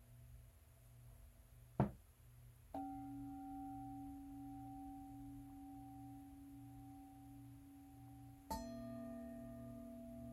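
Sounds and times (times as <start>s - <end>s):
sharp tap: 1.8s - 2.0s
singing bowls struck and ringing: 2.8s - 10.3s.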